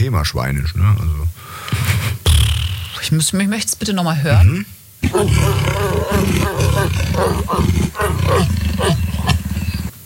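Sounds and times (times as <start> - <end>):
speech: 0.1 - 2.2, 3.0 - 9.4
leopard growling: 5.0 - 9.9.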